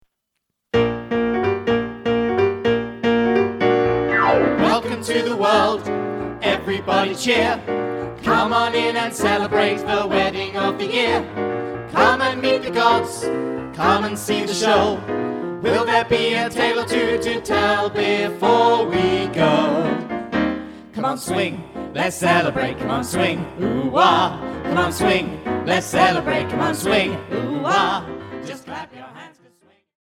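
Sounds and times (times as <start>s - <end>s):
swing music: 0.8s - 28.4s.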